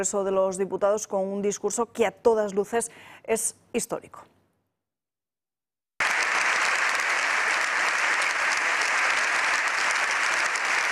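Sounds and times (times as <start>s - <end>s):
speech: 0.0s - 4.3s
long applause in parliament chamber: 6.0s - 10.8s.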